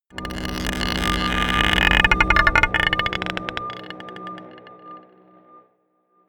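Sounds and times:
scraping a marble pot: 0:00.1 - 0:04.8
dark drones: 0:00.1 - 0:05.6.

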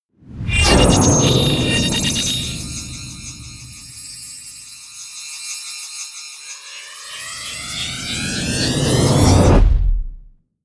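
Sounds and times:
promo synth pad: 0:00.5 - 0:09.2.

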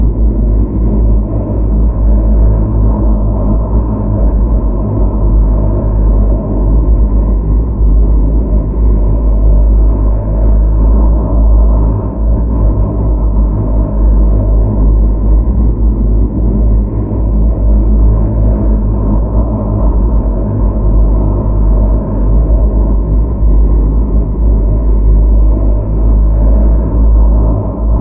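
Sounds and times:
low stealth drone: 0:00.0 - 0:28.0.

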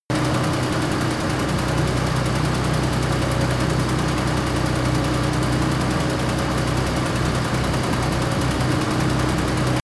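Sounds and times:
small tank engine running at medium steady speed: 0:00.1 - 0:09.8.

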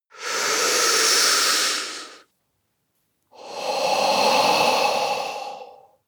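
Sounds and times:
man breathing deeply: 0:00.1 - 0:02.2, 0:03.4 - 0:06.0.

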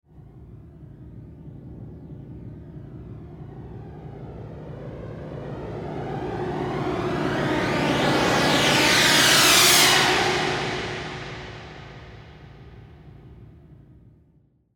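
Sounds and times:
rising flanger effect: 0:05.6 - 0:12.5.

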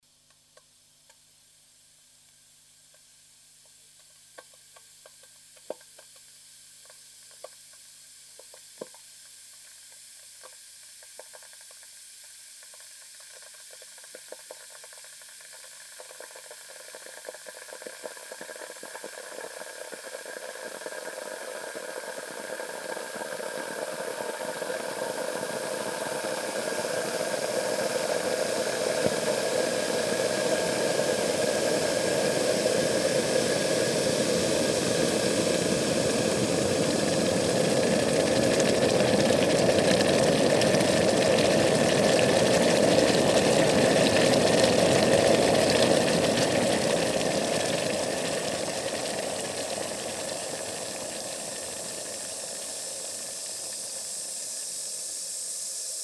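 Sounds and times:
kitchen water boiler: 0:00.2 - 0:56.0.

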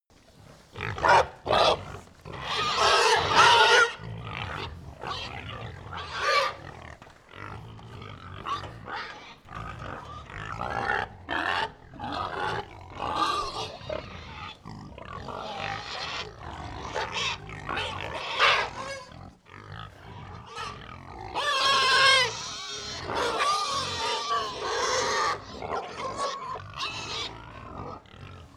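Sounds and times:
pig grunting: 0:00.4 - 0:28.5.

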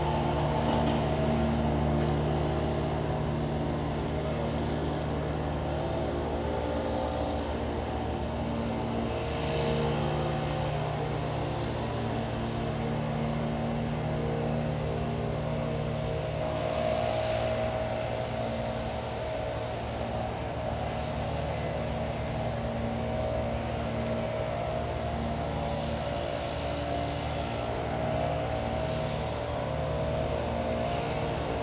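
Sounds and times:
leaf blower in a suburb: 0:00.0 - 0:31.6.

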